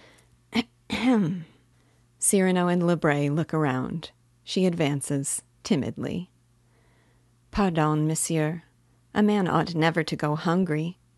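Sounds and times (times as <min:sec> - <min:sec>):
woman coughing: 0:00.6 - 0:01.4
speech: 0:01.0 - 0:01.5, 0:02.2 - 0:06.3, 0:07.6 - 0:11.0.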